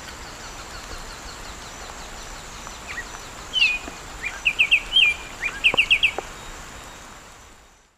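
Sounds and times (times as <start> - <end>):
Arremonops conirostris song in South American eastern lowlands: 0.0 - 7.9.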